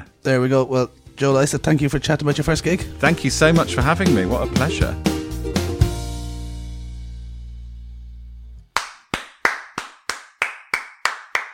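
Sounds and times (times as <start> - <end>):
speech: 0.2 - 5.1
studio audience applause: 8.8 - 11.5.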